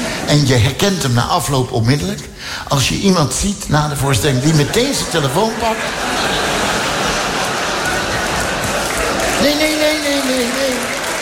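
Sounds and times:
laughter: 0.0 - 0.9, 4.2 - 11.2
speech: 0.3 - 6.4, 9.4 - 11.0
crowd clapping: 5.9 - 11.2.

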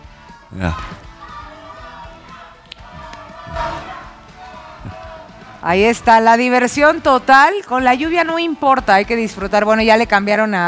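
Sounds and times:
crowd cheering loudly for Colombia: 0.0 - 7.3
speech: 0.5 - 1.1, 5.6 - 10.6.

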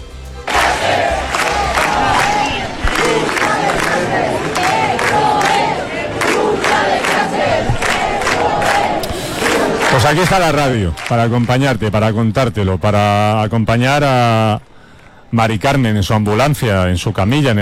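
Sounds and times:
large crowd clamoring in the street: 0.4 - 11.7
speech: 10.1 - 14.7, 15.3 - 17.5.

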